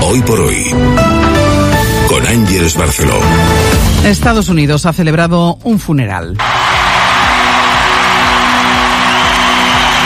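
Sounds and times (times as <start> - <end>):
speech: 0.2 - 1.0, 2.2 - 7.0
large crowd cheering and applauding: 6.4 - 10.0.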